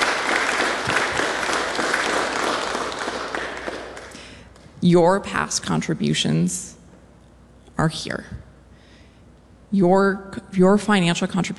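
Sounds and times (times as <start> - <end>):
audience applause: 0.0 - 4.3
speech: 4.8 - 6.8, 7.8 - 8.5, 9.7 - 11.5.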